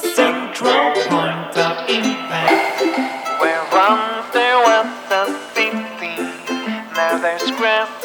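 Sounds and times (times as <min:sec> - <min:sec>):
chord conversation: 0:00.1 - 0:08.0.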